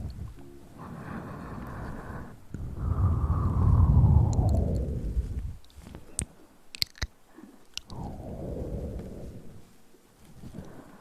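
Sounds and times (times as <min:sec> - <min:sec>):
low rumbling rush of hand sounds: 0:00.0 - 0:06.1, 0:07.8 - 0:10.9
faint rustling: 0:00.0 - 0:10.9
clicks and snaps: 0:04.2 - 0:08.2.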